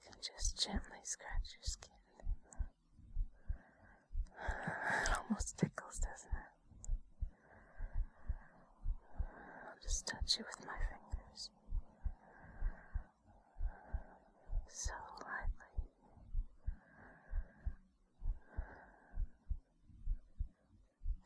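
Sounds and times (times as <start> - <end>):
breathy whisper: 0.0 - 2.6, 3.5 - 6.6, 7.4 - 15.9
speech: 0.2 - 2.0, 4.4 - 6.6, 9.8 - 11.6, 14.7 - 15.7
slow heartbeat: 0.3 - 21.2.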